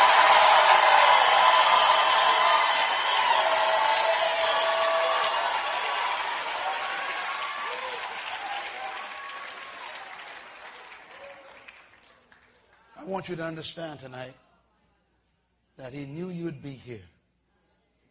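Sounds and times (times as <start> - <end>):
audience screaming and shouting: 0.0 - 10.0
speech: 13.2 - 14.4, 15.8 - 17.1.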